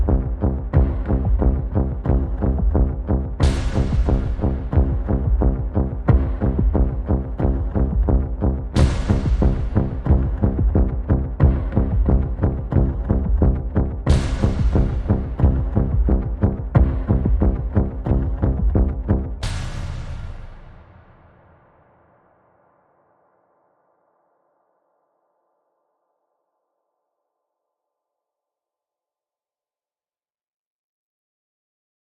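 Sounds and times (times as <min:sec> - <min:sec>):
spooky tension music: 0:00.0 - 0:20.8
bass: 0:00.0 - 0:20.9
drums: 0:00.0 - 0:21.7.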